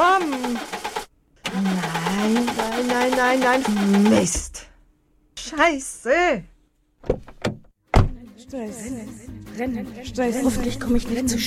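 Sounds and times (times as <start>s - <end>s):
car engine cranking but failing to start: 0.2s - 4.2s
speech: 3.1s - 4.7s, 5.5s - 7.3s, 8.5s - 11.4s.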